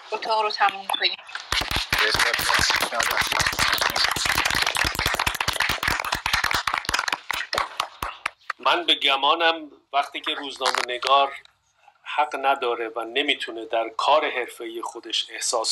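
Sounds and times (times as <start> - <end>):
speech: 0.1 - 4.3, 8.7 - 11.5, 12.2 - 15.7
group clapping hands: 1.4 - 8.6.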